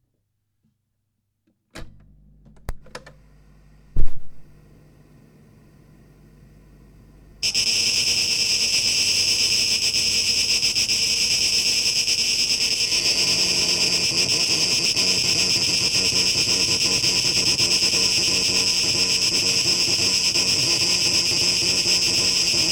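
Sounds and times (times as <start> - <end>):
knocks and thumps: 4.0 - 4.4
cicada buzzing: 7.4 - 22.7.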